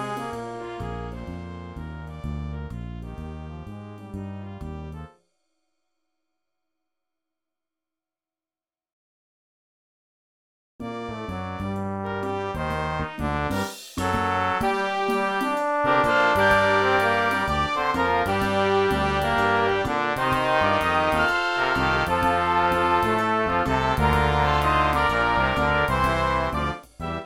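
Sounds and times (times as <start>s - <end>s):
fugue on a jazz theme: 0.0s - 5.2s, 10.8s - 27.2s.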